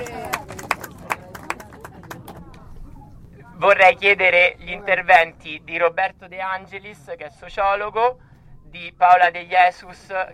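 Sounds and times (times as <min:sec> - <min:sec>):
sparse applause: 0:00.0 - 0:02.5
speech: 0:03.6 - 0:10.3.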